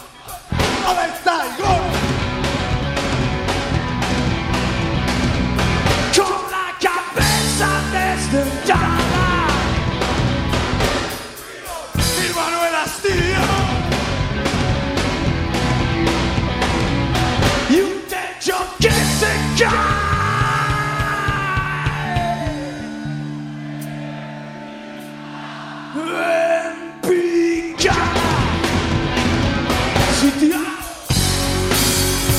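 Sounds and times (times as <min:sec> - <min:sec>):
raw live rock band recording: 0:00.0 - 0:25.7, 0:26.9 - 0:32.3.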